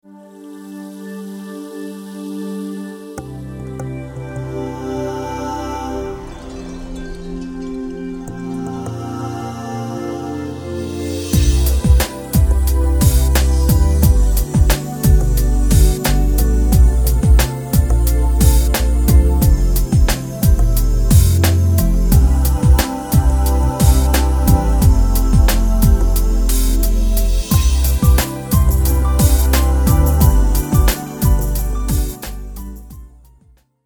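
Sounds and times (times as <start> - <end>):
chill-out groove music: 6.1 - 33.4.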